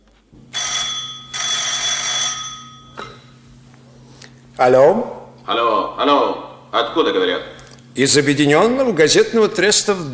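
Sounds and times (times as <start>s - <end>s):
telephone bell ringing: 0.5s - 3.3s
speech: 4.6s - 10.1s.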